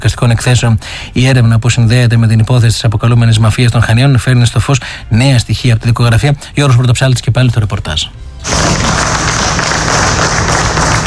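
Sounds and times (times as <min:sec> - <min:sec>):
speech: 0:00.0 - 0:09.2
relatives and friends applauding: 0:08.4 - 0:11.0.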